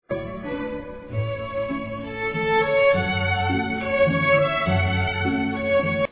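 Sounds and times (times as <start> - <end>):
waltz music: 0.0 - 6.0.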